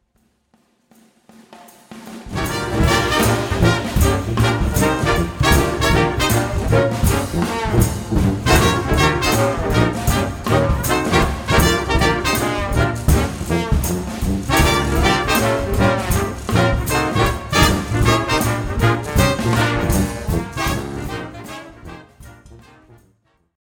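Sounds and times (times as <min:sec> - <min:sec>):
sanctified blues music: 0:02.3 - 0:23.0.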